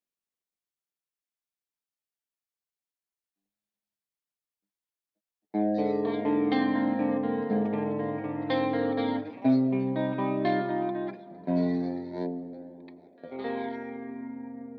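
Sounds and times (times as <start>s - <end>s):
guitar: 5.6s - 14.7s.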